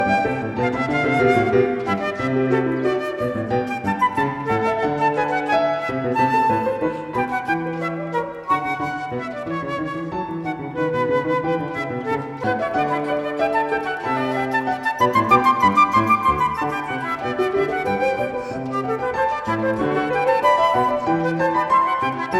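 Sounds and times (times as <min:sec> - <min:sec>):
fast piano and flute piece: 0:00.0 - 0:22.3.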